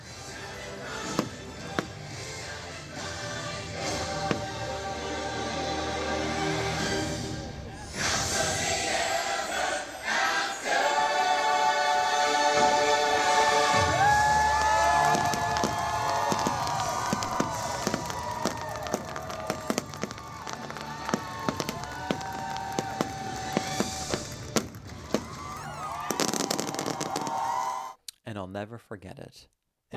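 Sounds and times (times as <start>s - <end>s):
sustained show music: 0.0s - 27.8s
fireworks finale booming and crackling: 1.0s - 4.8s, 13.7s - 27.8s
speech: 28.8s - 29.9s.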